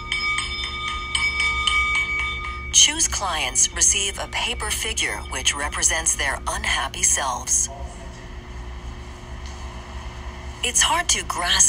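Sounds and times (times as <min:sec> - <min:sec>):
singing bowl ringing: 0:00.0 - 0:09.1
speech: 0:02.8 - 0:08.0, 0:10.6 - 0:11.6.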